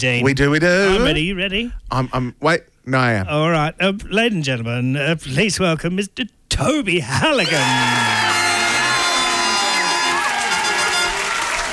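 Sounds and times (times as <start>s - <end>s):
speech: 0.0s - 8.2s
studio audience cheering and whooping as a guest is welcomed: 7.4s - 11.7s.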